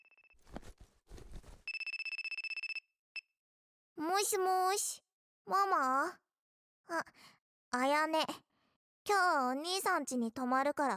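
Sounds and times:
phone ringtone for an incoming call: 1.7 - 2.9
speech: 4.2 - 6.2, 6.9 - 8.4, 9.1 - 10.9.

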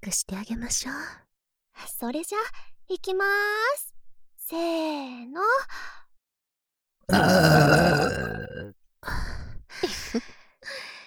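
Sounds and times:
speech: 0.0 - 1.2, 1.8 - 3.9, 4.5 - 6.0, 7.1 - 9.3
burping: 7.1 - 8.7.

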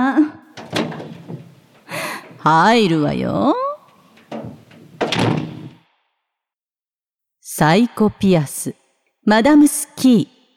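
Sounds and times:
door clicking and rattling open: 0.5 - 3.0, 3.8 - 5.8
speech: 2.4 - 3.6, 7.6 - 10.4.

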